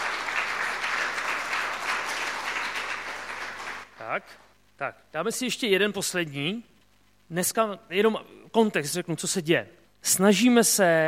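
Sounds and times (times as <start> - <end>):
audience applause: 0.0 - 3.9
speech: 4.1 - 6.7, 7.3 - 11.0.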